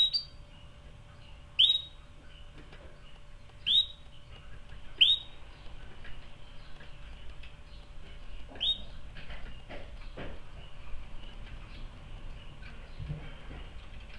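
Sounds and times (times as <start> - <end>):
canary chirping sharp rising notes: 0.0 - 13.0.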